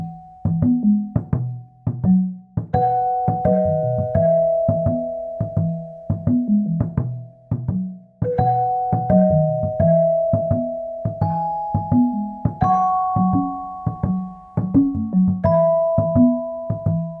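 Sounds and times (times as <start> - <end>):
chimes: 0.0 - 1.9, 2.8 - 7.5, 8.3 - 17.1
marimba: 0.0 - 17.1
vibraphone: 0.0 - 17.1
bells: 2.8 - 7.5, 8.3 - 17.1.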